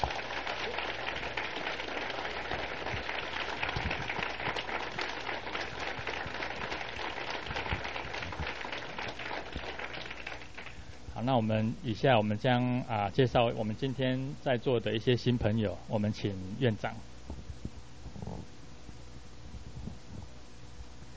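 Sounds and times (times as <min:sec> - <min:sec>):
warm applause: 0:00.0 - 0:11.0
speech: 0:11.2 - 0:17.1.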